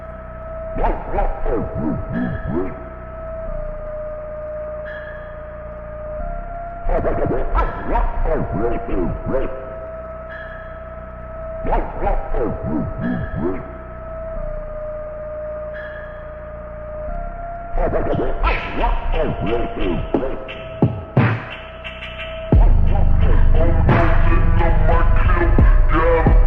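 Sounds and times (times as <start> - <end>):
phonk music: 0.7 - 3.1, 6.8 - 10.2, 11.6 - 14.0, 17.7 - 26.4.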